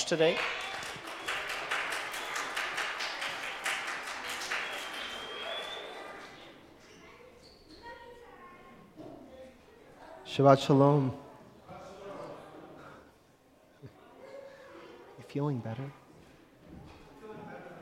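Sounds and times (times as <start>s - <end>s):
audience applauding: 0.0s - 6.7s
speech: 0.1s - 0.6s, 10.4s - 11.2s, 15.4s - 16.0s.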